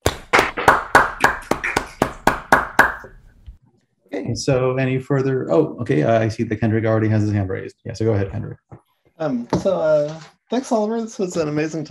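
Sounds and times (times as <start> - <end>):
round of applause on video call: 0.0 - 3.0
speech: 4.3 - 11.9.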